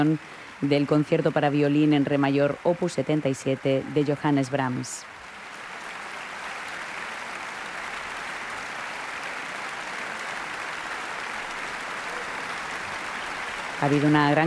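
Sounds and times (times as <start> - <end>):
concert hall audience applause after a violin concerto performance: 0.0 - 2.2, 4.3 - 14.4
speech: 0.0 - 5.1, 13.8 - 14.4.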